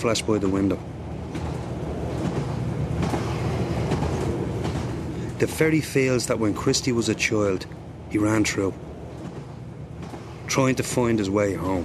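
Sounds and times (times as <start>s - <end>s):
speech: 0.0s - 1.5s, 5.4s - 8.9s, 10.5s - 11.8s
train rumbling along the tracks: 0.0s - 11.8s
train wheels clacking over rail joints: 0.0s - 11.8s.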